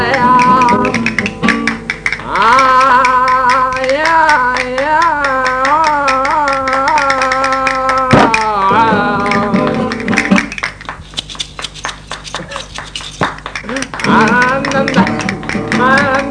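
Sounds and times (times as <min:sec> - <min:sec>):
explosive flamenco music: 0:00.0 - 0:16.3.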